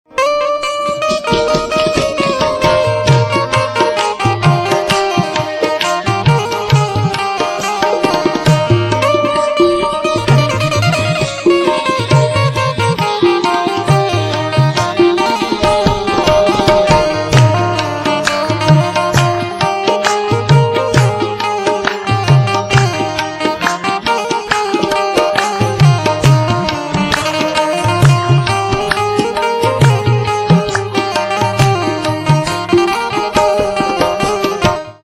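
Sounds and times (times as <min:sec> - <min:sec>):
devotional banjo instrumental ringtone: 0:00.1 - 0:35.0.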